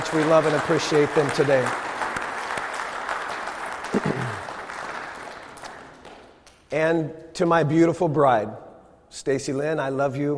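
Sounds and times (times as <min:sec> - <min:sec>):
speech: 0:00.0 - 0:01.9, 0:03.9 - 0:04.4, 0:06.7 - 0:10.3
audience clapping: 0:00.0 - 0:06.8.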